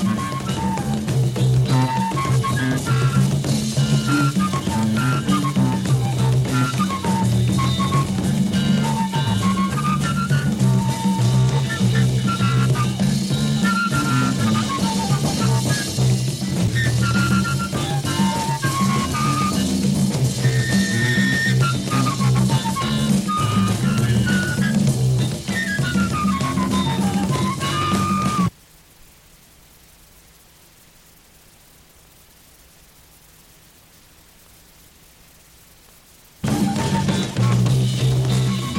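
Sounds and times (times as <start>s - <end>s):
flute instrumental music: 0.0s - 28.5s, 36.4s - 38.7s.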